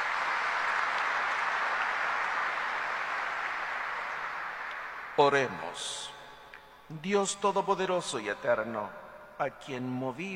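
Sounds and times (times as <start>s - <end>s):
audience applauding: 0.0s - 5.6s
speech: 5.2s - 6.1s, 6.9s - 10.3s.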